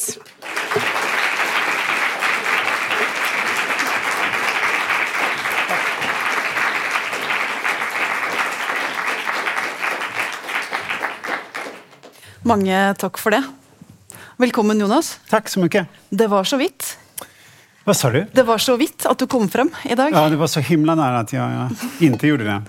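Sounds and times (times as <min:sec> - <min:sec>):
audience applause: 0:00.0 - 0:12.1
speech: 0:12.5 - 0:13.6, 0:14.4 - 0:16.9, 0:17.9 - 0:22.6.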